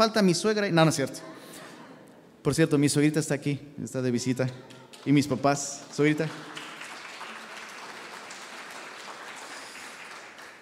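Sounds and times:
speech: 0.0 - 1.4, 2.4 - 6.6
audience applause: 4.7 - 10.5.

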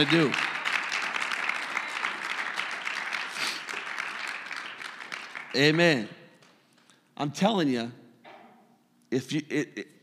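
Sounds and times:
speech: 0.0 - 0.4, 5.5 - 6.2, 7.2 - 8.0, 9.1 - 10.0
audience clapping: 0.0 - 6.2.

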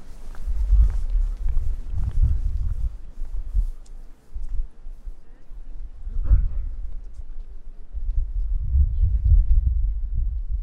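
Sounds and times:
low street rumble in Prague: 0.5 - 3.7, 5.8 - 7.1, 7.9 - 10.6.

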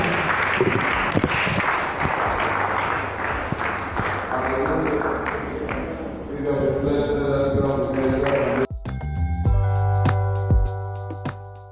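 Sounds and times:
large crowd clapping: 0.0 - 6.5, 7.6 - 8.7
music: 2.0 - 11.6.

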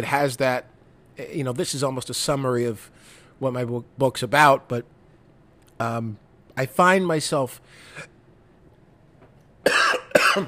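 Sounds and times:
speech: 0.0 - 5.0, 5.8 - 8.1
man coughing after food went down the wrong pipe: 9.6 - 10.4.

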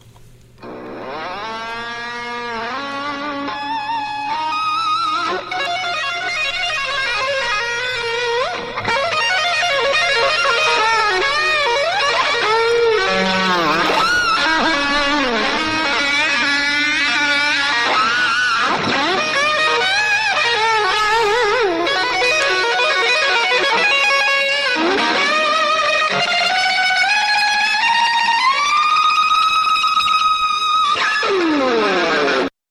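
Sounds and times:
distorted electric guitar solo: 0.6 - 32.5
low sustained drone: 6.0 - 17.1.

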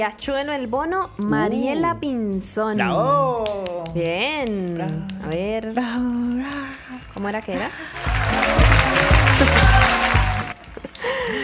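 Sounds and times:
speech: 0.0 - 9.8
audience applause: 7.6 - 11.4.

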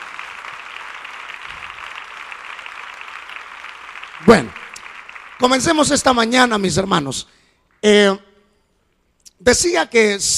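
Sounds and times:
audience applause: 0.0 - 6.2
speech: 4.2 - 4.6, 5.4 - 8.2, 9.4 - 10.3.

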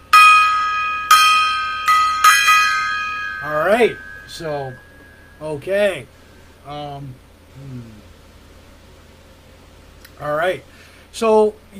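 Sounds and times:
gong being struck: 0.0 - 5.8
speech: 3.8 - 8.1, 10.2 - 11.7.

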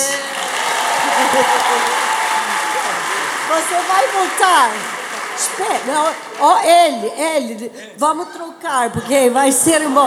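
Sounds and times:
applause: 0.0 - 7.1
laughter: 0.5 - 10.0
speech: 3.5 - 10.0.

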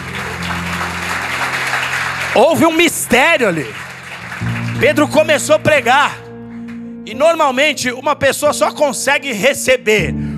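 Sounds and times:
audience applause: 0.0 - 5.7
speech: 2.3 - 3.8, 4.8 - 6.2, 7.1 - 10.2.

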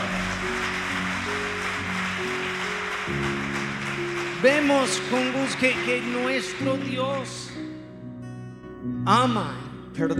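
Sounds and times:
audience applause: 0.0 - 7.8
speech: 4.4 - 7.5, 9.0 - 10.1.

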